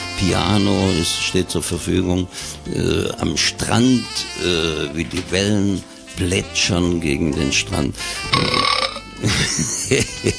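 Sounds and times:
speech: 0.2s - 10.3s
burp sound effect from a sound machine: 8.3s - 9.0s
laughter: 9.2s - 10.3s.

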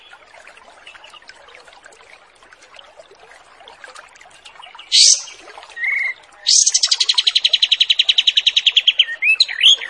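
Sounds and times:
wild pied triller song with buzzy trills, sharp note and short whistle: 4.9s - 9.8s.

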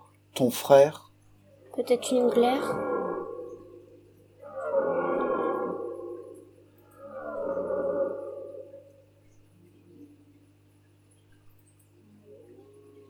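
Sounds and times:
faint steady low hum: 0.0s - 13.0s
speech: 0.4s - 1.1s, 1.8s - 2.9s
red deer stag bellowing during the rut: 1.8s - 9.1s.

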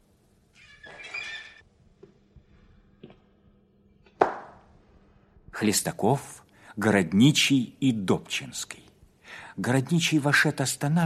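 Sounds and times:
door handle turning with a squeaky creak: 0.6s - 1.6s
speech: 5.6s - 8.9s, 9.6s - 11.0s.

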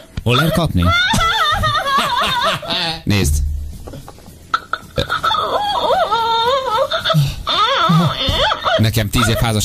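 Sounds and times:
speech: 0.3s - 1.2s, 2.2s - 3.4s, 8.8s - 9.6s
crying baby doll toy wailing electronically: 5.2s - 8.8s.

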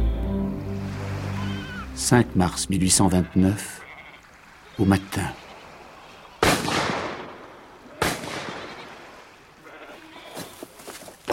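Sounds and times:
wild goats bleating faintly: 0.0s - 0.4s, 1.2s - 6.5s, 7.1s - 11.0s
speech: 2.0s - 3.8s, 4.8s - 5.4s
loud gunshots fired to shoot wild goats: 6.4s - 9.1s.

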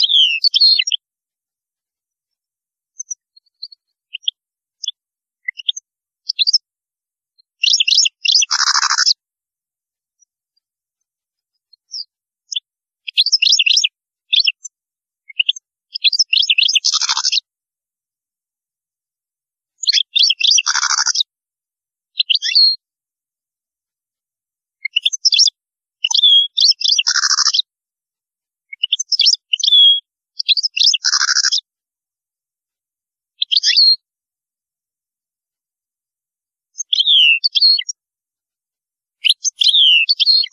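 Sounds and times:
European goldfinch song: 0.0s - 1.1s, 2.0s - 9.2s, 10.1s - 17.5s, 19.6s - 21.3s, 22.0s - 22.9s, 24.7s - 27.7s, 28.6s - 31.7s, 33.3s - 34.1s, 36.6s - 38.1s, 39.0s - 40.5s.

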